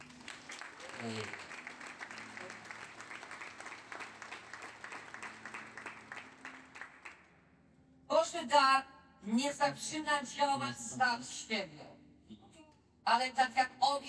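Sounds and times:
audience applauding: 0.0 - 7.3
speech: 1.0 - 1.4, 8.3 - 11.9, 13.1 - 14.0.

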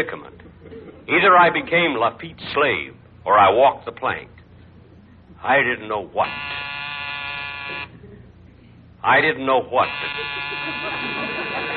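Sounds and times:
speech: 0.0 - 0.4, 1.1 - 4.4, 5.4 - 6.6, 7.7 - 8.0, 9.0 - 11.1
laughter: 0.0 - 2.0, 9.8 - 11.7
door buzzer: 6.2 - 8.0, 9.8 - 11.7.

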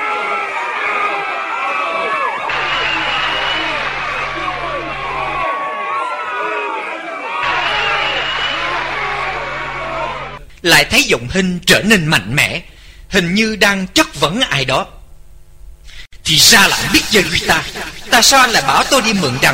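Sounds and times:
crowd booing and jeering: 0.0 - 10.4
speech: 10.6 - 15.0, 16.3 - 19.5.

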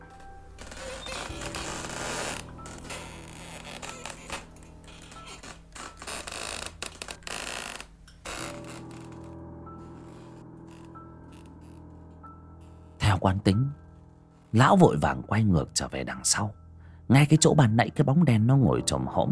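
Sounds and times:
door hinge creaking at night: 0.0 - 12.7
speech: 13.2 - 13.8, 14.5 - 19.2.

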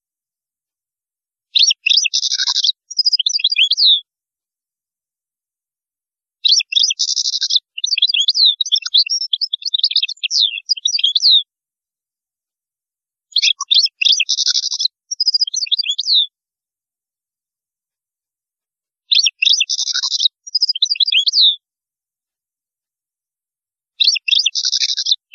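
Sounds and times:
European goldfinch singing: 1.6 - 4.0, 6.4 - 11.5, 13.3 - 16.3, 19.1 - 21.6, 24.0 - 25.3.

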